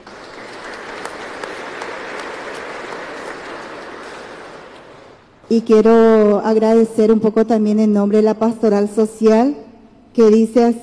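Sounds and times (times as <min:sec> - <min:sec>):
audience applauding: 0:00.0 - 0:05.4
speech: 0:05.5 - 0:09.6, 0:10.2 - 0:10.8.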